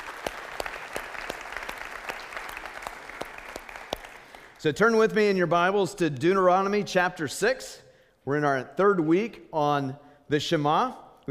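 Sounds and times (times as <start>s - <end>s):
audience applause: 0.0s - 4.6s
speech: 4.6s - 11.2s.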